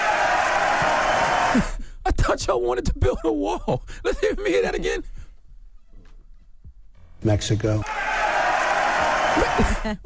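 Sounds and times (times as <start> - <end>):
rally crowd reacting: 0.0 - 1.6, 7.8 - 10.0
speech: 1.5 - 1.8, 2.4 - 5.2, 7.2 - 8.0, 9.3 - 10.0.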